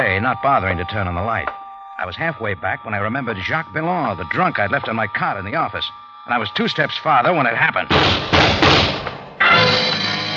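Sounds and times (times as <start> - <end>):
speech: 0.0 - 9.0
gunshots behind a door: 7.9 - 9.3.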